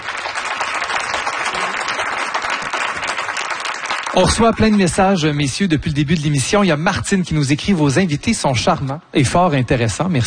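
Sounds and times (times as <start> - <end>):
crowd applause: 0.0 - 5.2
speech: 4.2 - 10.2.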